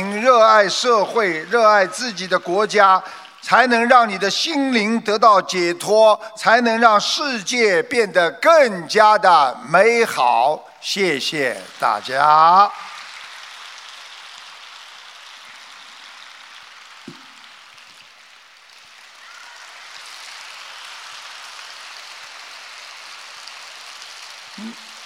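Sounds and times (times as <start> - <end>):
audience clapping: 0.0 - 4.2, 11.0 - 24.2
speech: 0.0 - 12.8.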